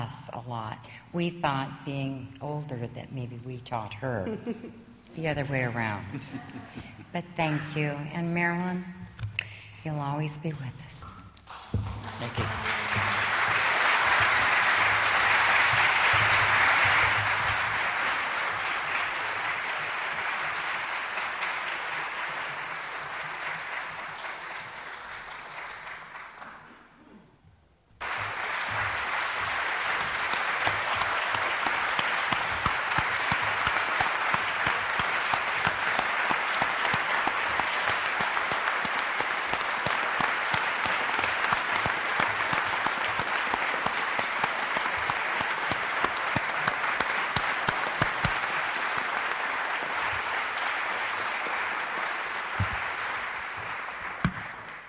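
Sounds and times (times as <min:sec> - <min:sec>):
speech: 0:00.1 - 0:09.0, 0:09.8 - 0:11.0, 0:11.7 - 0:12.9
audience applause: 0:11.5 - 0:27.0, 0:28.0 - 0:54.8.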